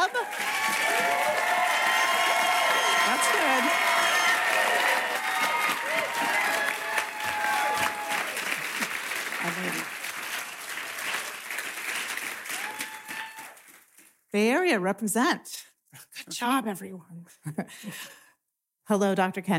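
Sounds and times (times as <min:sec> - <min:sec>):
audience applause welcoming a guest author at a club talk: 0:00.0 - 0:14.0
speech: 0:14.4 - 0:15.6, 0:16.4 - 0:18.2, 0:18.9 - 0:19.5.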